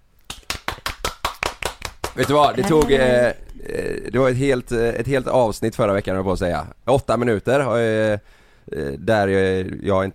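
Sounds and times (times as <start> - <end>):
applause: 0.3 - 3.0
speech: 2.2 - 10.1.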